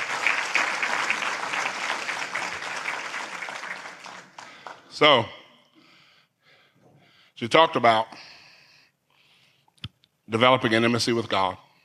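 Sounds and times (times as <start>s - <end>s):
audience applause: 0.0s - 5.0s
speech: 5.0s - 5.4s, 7.4s - 8.3s, 10.3s - 11.6s.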